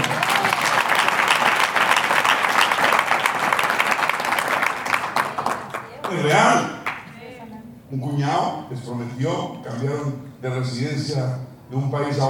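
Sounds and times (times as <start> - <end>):
crowd applause: 0.0 - 7.1
speech: 7.9 - 12.2.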